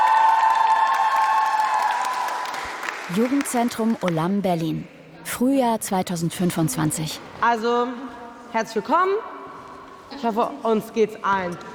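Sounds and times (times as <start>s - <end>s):
applause: 0.0s - 4.3s
speech: 3.1s - 9.3s, 10.1s - 11.7s.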